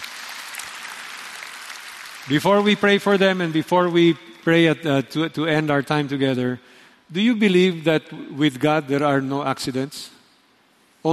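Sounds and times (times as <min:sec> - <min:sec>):
crowd applauding: 0:00.0 - 0:04.8
speech: 0:02.2 - 0:10.2.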